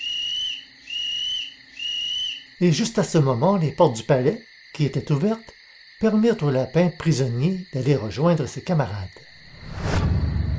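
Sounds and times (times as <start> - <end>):
clear high-pitched whistles in the evening: 0.0 - 2.4
speech: 2.6 - 9.9.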